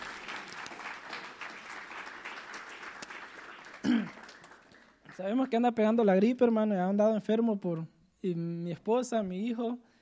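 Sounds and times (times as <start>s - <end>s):
audience applause: 0.0s - 5.2s
speech: 5.2s - 9.9s.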